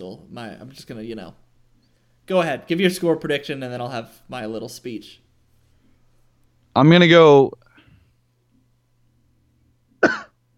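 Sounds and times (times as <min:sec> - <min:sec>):
speech: 0:00.0 - 0:01.4, 0:02.3 - 0:05.2, 0:06.8 - 0:07.6
person coughing after choking: 0:10.0 - 0:10.5.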